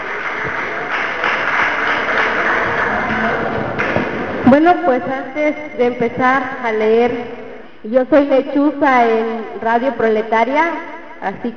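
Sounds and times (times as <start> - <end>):
audience applause: 0.0 - 4.4
speech: 4.5 - 11.5.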